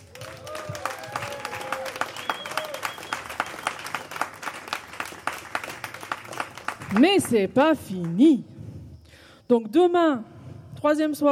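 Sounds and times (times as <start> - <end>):
cheering voices: 0.0 - 5.6
audience applause: 0.0 - 7.3
whistles: 0.2 - 5.1
speech: 7.0 - 8.5, 9.5 - 11.3.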